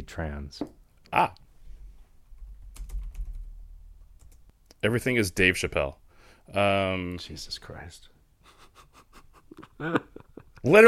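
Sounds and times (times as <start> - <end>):
speech: 0.1 - 1.4, 4.8 - 8.1, 9.6 - 10.8
typing on a computer keyboard: 2.4 - 3.5, 4.2 - 4.5.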